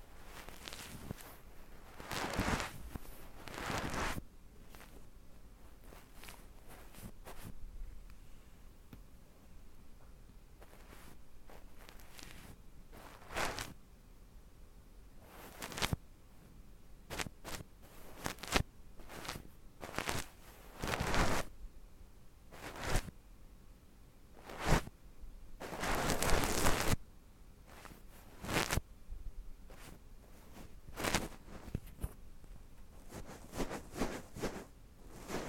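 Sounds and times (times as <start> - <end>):
soft fluffy ASMR sounds in the left ear: 0.0 - 8.7, 10.6 - 13.8, 15.2 - 16.0, 17.0 - 21.6, 22.5 - 23.2, 24.4 - 25.0, 25.6 - 27.0, 27.6 - 35.4.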